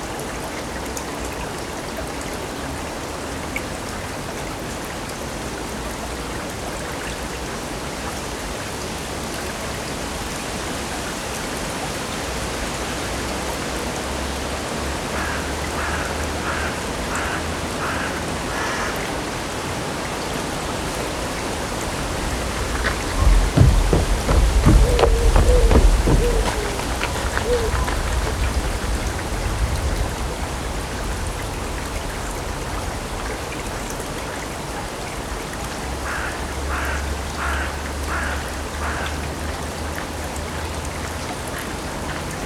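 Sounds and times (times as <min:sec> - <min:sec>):
running water of the river in Odense, Denmark: 0:00.0 - 0:42.4
louder thumping: 0:22.6 - 0:28.5.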